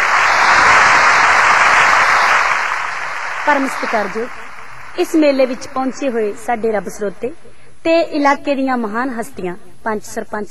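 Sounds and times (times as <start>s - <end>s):
crowd applause at a Punjabi village fair for a female singer arriving on stage: 0.0s - 6.2s
speech: 3.5s - 4.4s, 5.0s - 10.5s.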